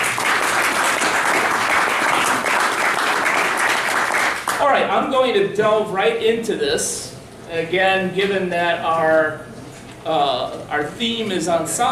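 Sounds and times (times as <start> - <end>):
crowd applauding: 0.0 - 4.6
speech: 4.8 - 11.9.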